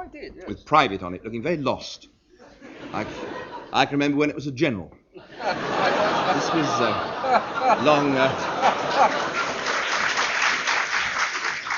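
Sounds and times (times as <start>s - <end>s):
speech: 0.1s - 2.1s, 2.9s - 9.5s
live audience laughing: 2.5s - 4.0s, 5.2s - 11.0s
live audience applauding: 6.0s - 11.7s.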